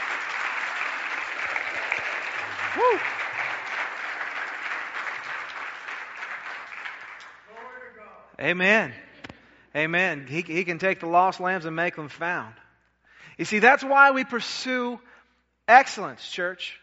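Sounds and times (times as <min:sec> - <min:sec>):
audience applause: 0:00.0 - 0:07.6
speech: 0:02.8 - 0:03.2, 0:08.4 - 0:09.0, 0:09.8 - 0:12.6, 0:13.3 - 0:15.1, 0:15.7 - 0:16.8.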